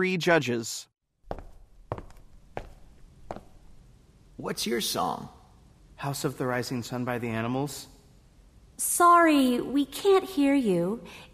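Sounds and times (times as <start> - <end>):
speech: 0.0 - 0.9, 4.4 - 5.4, 6.0 - 7.9, 8.8 - 11.3
footsteps walking onto a stage at an audition: 1.2 - 3.9.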